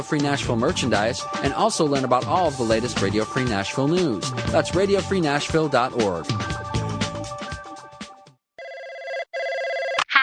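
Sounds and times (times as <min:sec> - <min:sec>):
speech: 0:00.0 - 0:06.6
telephone ringing in electronic bursts: 0:08.6 - 0:10.1.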